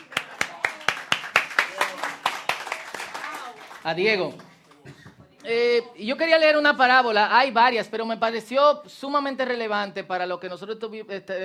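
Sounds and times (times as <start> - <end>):
audience applause: 0.0 - 4.0
speech: 3.8 - 11.4.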